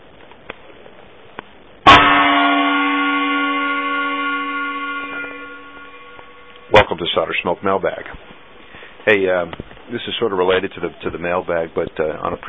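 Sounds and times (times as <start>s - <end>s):
faint hiss: 0.0s - 12.4s
gong struck and ringing: 1.9s - 7.0s
speech: 7.0s - 8.3s, 9.0s - 12.4s.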